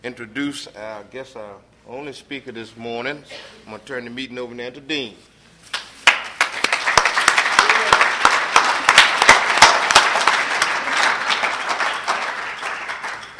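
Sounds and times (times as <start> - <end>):
speech: 0.0 - 5.3
audience applause: 6.0 - 13.3.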